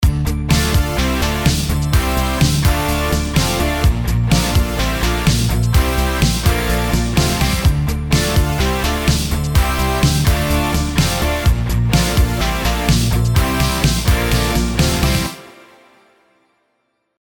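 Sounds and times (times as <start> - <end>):
synthwave music: 0.5 - 16.4.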